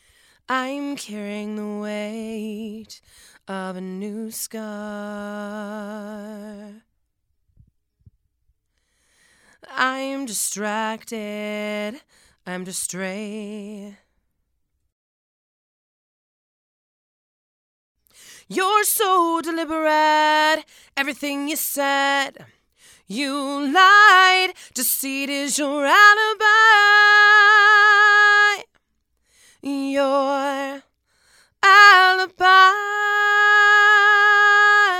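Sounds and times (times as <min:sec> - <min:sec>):
female vocals: 0:00.5 - 0:06.9, 0:09.6 - 0:14.1, 0:18.3 - 0:28.8, 0:29.5 - 0:34.9.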